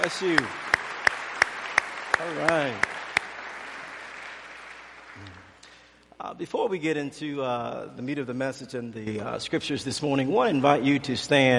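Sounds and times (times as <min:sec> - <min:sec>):
speech: 0:00.0 - 0:00.6, 0:02.2 - 0:02.9, 0:06.2 - 0:11.5
audience applause: 0:00.0 - 0:05.6.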